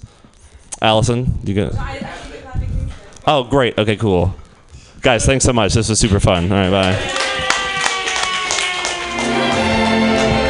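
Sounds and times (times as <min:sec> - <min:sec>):
speech: 0:00.8 - 0:02.1, 0:03.2 - 0:04.4, 0:05.0 - 0:07.2
audience group clapping: 0:06.2 - 0:10.4.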